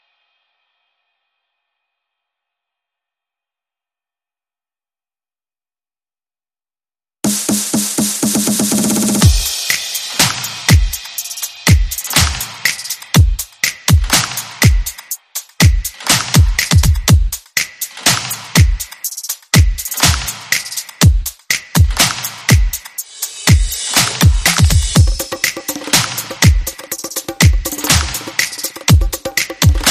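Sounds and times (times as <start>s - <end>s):
drum: 7.3s - 29.9s.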